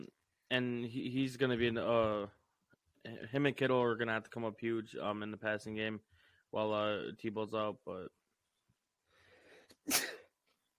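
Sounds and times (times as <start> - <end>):
speech: 0.5 - 2.4, 3.0 - 8.2, 9.8 - 10.0
person sneezing: 9.8 - 10.3.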